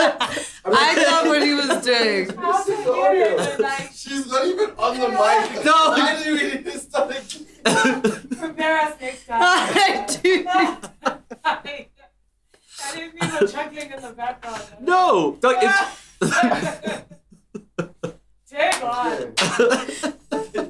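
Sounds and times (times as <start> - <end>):
laughter: 0.0 - 11.7, 12.9 - 13.7, 15.6 - 18.2, 18.8 - 20.6
speech: 0.7 - 11.9, 12.8 - 17.2, 18.5 - 20.6
hand clap to sync recording: 18.1 - 19.6.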